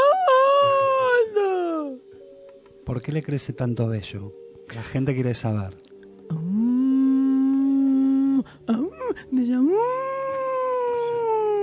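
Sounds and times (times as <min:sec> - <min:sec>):
human voice imitating a werewolf howl: 0:00.0 - 0:02.0, 0:06.3 - 0:08.5, 0:09.7 - 0:11.6
speech: 0:02.9 - 0:06.6, 0:08.7 - 0:10.1.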